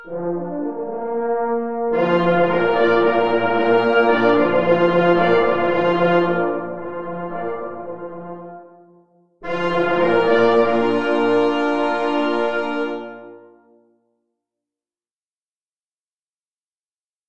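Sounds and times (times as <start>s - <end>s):
hunting march on two pless horns and two par force horns: 0.0s - 8.7s, 9.4s - 13.6s.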